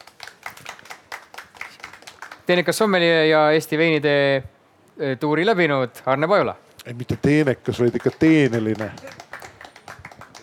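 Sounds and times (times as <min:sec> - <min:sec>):
audience applause: 0:00.0 - 0:02.6, 0:07.6 - 0:10.4
speech: 0:02.5 - 0:09.2.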